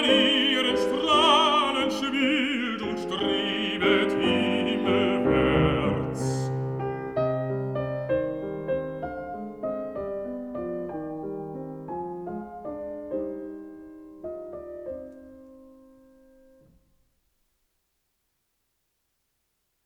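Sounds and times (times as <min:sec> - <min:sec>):
person singing: 0:00.0 - 0:06.6
piano: 0:00.0 - 0:17.4.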